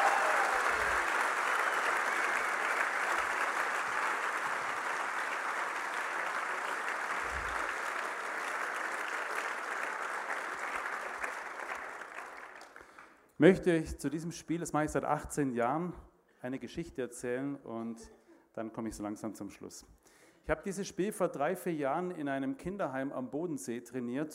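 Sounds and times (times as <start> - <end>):
audience applause: 0.0 - 13.2
speech: 13.4 - 24.3.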